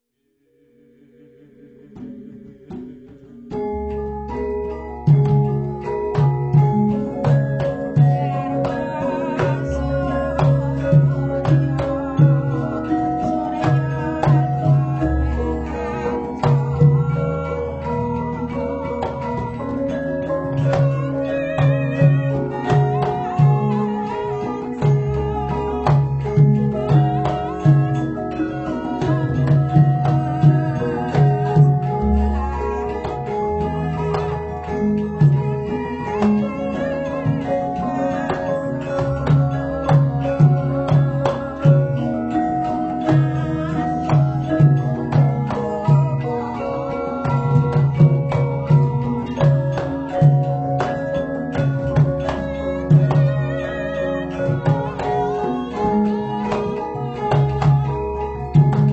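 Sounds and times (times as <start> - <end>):
Surakarta gamelan: 1.9 - 58.9.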